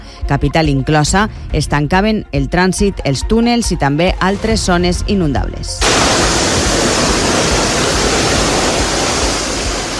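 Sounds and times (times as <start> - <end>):
speech: 0.3 - 6.4
torrential rain pouring down: 5.8 - 9.9.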